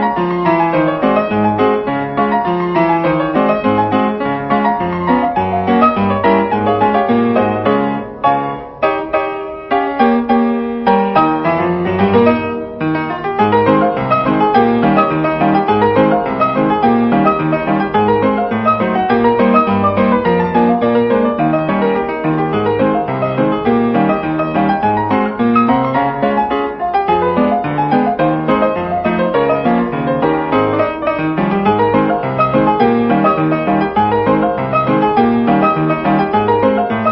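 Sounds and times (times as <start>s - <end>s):
piano roll ragtime piece: 0.0s - 37.1s.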